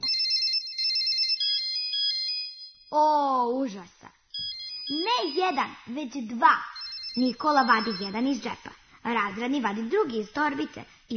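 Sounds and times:
mobile phone ringtone: 0.0s - 3.0s, 4.3s - 5.8s, 6.6s - 8.3s
speech: 2.9s - 4.2s, 4.9s - 11.1s.

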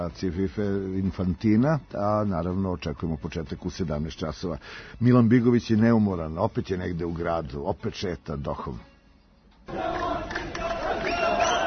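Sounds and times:
speech: 0.0s - 8.9s
Qatar football fans singing and chanting in Doha: 9.7s - 11.6s.

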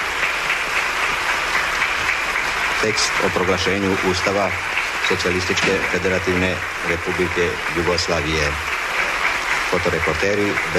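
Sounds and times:
long sustained applause from standing members of parliament: 0.0s - 10.7s
speech: 2.8s - 8.7s, 9.7s - 10.7s.

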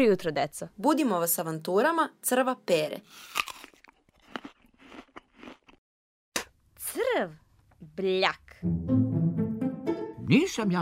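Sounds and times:
speech: 0.0s - 3.5s, 6.9s - 9.2s, 10.3s - 10.8s
crunching bites of an apple: 3.2s - 5.8s.

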